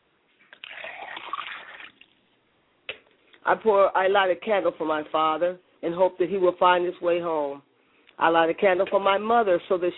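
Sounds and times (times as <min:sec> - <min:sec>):
liquid poured out as libation: 0:00.5 - 0:02.2
speech: 0:03.5 - 0:09.9.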